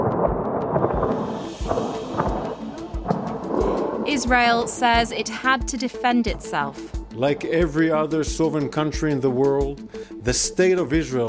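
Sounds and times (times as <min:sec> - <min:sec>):
explosions from airstrikes in the capital: 0:00.0 - 0:04.5
speech: 0:04.1 - 0:11.2.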